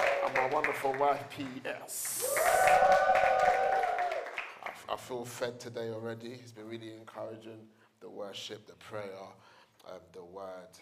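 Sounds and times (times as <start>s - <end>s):
audience applause: 0.0s - 4.8s
speech: 0.3s - 3.7s, 4.9s - 10.8s.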